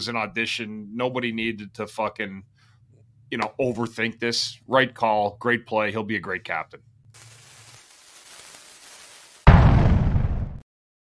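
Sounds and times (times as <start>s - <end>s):
speech: 0.0s - 2.5s, 3.3s - 7.3s
explosion sound effect the Bundy bomb: 9.4s - 10.6s.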